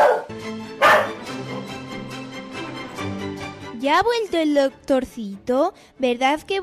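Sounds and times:
rabid dog barking: 0:00.0 - 0:01.2
steady tonal background: 0:00.4 - 0:05.5
speech: 0:03.8 - 0:06.6.

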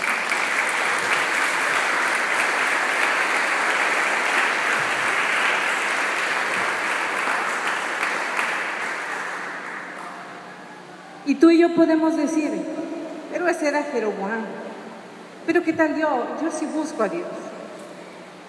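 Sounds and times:
audience applause: 0:00.0 - 0:10.4
speech: 0:11.4 - 0:12.8, 0:13.4 - 0:14.6, 0:15.4 - 0:17.5.

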